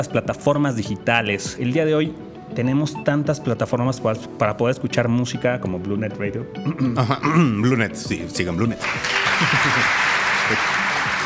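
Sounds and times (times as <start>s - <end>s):
speech: 0.0s - 10.8s
applause sound effect: 8.7s - 11.2s
laughter: 9.0s - 11.0s.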